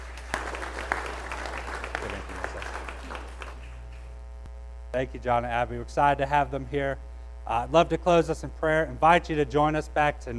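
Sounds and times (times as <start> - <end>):
audience applause: 0.0 - 4.1
speech: 5.0 - 10.3.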